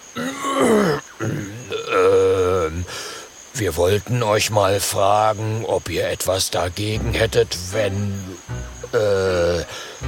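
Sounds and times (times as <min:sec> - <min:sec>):
throat clearing: 0:00.2 - 0:02.7
speech: 0:03.6 - 0:10.0.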